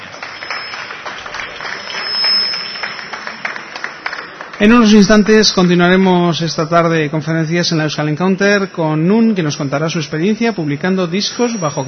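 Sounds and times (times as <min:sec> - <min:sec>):
audience applause: 0:00.0 - 0:05.8
speech: 0:04.6 - 0:11.8.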